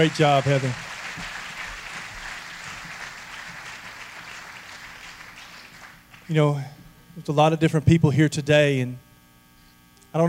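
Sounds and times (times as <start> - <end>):
speech: 0.0 - 0.9, 6.3 - 9.0
crowd applause: 0.0 - 6.4.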